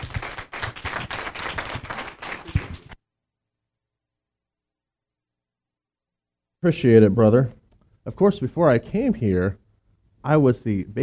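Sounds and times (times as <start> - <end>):
audience clapping: 0.0 - 3.0
speech: 6.6 - 9.6, 10.2 - 11.0.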